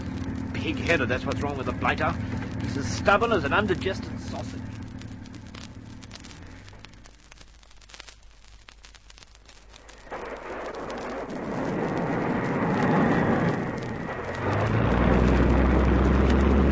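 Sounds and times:
plane engine: 0:00.0 - 0:06.8, 0:11.3 - 0:16.7
speech: 0:00.6 - 0:04.7.

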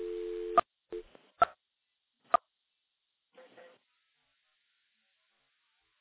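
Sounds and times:
telephone dial tone on an electromechanical switch: 0:00.0 - 0:00.6.

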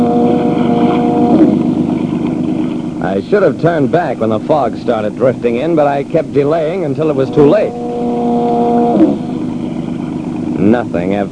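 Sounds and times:
wind rumble: 0:00.0 - 0:03.0, 0:07.1 - 0:10.6
motorboat engine droning: 0:00.0 - 0:11.3
speech: 0:03.2 - 0:07.9, 0:10.6 - 0:11.3.

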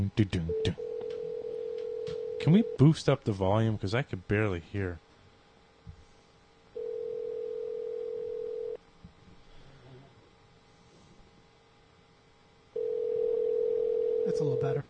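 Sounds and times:
speech: 0:00.1 - 0:00.8, 0:02.4 - 0:05.0
outgoing Skype call ring tone: 0:00.5 - 0:02.4, 0:06.8 - 0:08.8, 0:12.8 - 0:14.4.

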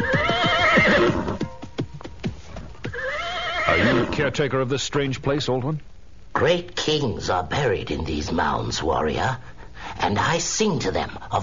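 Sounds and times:
horse whinnying: 0:00.0 - 0:01.6, 0:02.5 - 0:04.3
horse hoof clops and thuds: 0:00.0 - 0:03.9
speech: 0:04.2 - 0:11.4.

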